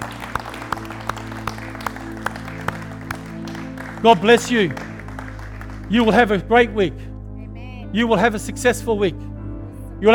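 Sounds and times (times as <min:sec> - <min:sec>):
audience applauding: 0:00.0 - 0:06.5
speech: 0:04.0 - 0:04.9, 0:05.9 - 0:07.1, 0:07.9 - 0:09.3.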